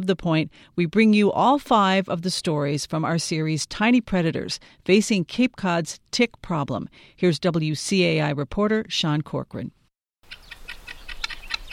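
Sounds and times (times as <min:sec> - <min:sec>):
speech: 0:00.0 - 0:09.8
flock of guinea hens calling: 0:10.3 - 0:11.7.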